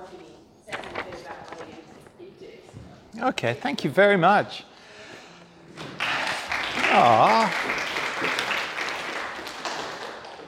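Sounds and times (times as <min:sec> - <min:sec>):
speech: 0:03.2 - 0:04.7, 0:07.0 - 0:07.7
audience clapping: 0:05.8 - 0:10.4.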